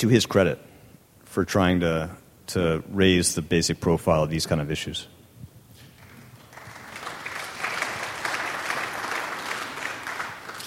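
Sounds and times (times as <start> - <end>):
speech: 0.0 - 0.7, 1.3 - 5.2
audience applause: 6.0 - 10.6.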